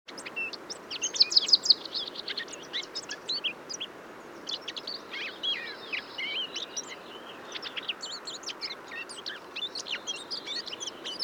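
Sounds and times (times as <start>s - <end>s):
Eurasian blackcap Sylvia atricapilla song: 0.1s - 3.9s, 4.5s - 11.2s.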